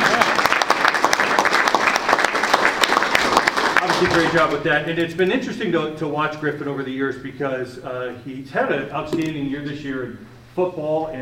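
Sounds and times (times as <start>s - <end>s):
audience applause: 0.0s - 4.6s
speech: 4.0s - 11.2s.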